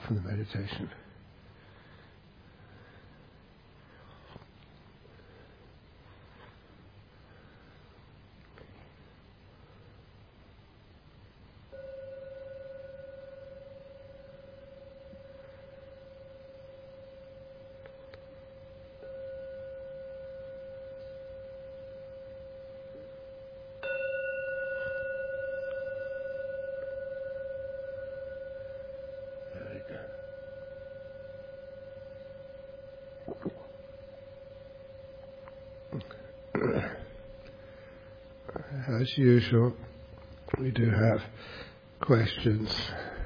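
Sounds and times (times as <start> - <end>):
speech: 0.1 - 1.1, 39.0 - 39.8, 40.7 - 43.1
meditation gong struck: 11.7 - 43.2.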